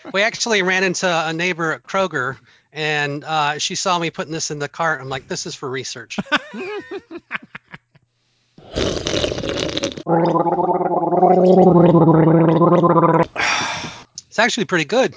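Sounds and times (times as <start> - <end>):
speech: 0.0 - 6.9, 10.1 - 13.5, 14.3 - 15.1
slurping a blueberry beer into the microphone: 8.6 - 13.5.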